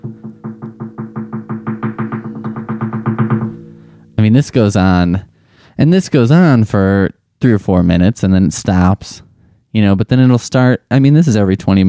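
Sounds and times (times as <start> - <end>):
heating pipes knocking in sharp taps: 0.0 - 5.6
speech: 4.3 - 11.8.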